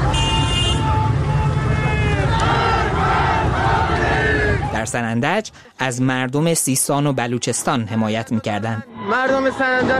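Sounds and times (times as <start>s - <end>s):
protest crowd chanting slogans: 0.7s - 4.9s
speech: 4.9s - 9.9s.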